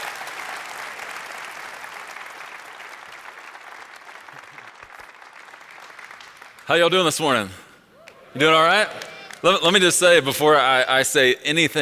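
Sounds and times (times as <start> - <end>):
audience applause at a morning church service welcoming a pastor: 0.0 - 7.1, 8.0 - 9.8
speech: 6.7 - 7.6, 8.4 - 11.8.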